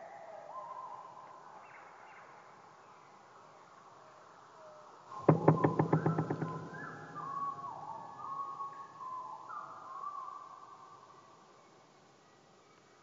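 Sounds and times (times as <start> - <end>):
black woodpecker calling: 5.1 - 10.3.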